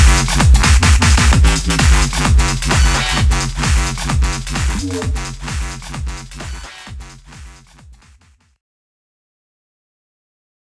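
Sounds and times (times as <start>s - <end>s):
fidget house music: 0.0s - 7.6s.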